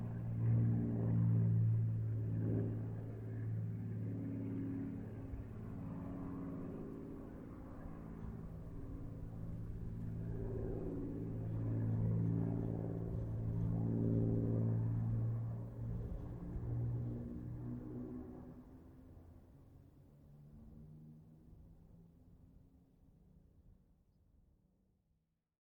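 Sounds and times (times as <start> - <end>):
Supermarine Spitfire Mk XVI aircraft passing: 0.0 - 20.0.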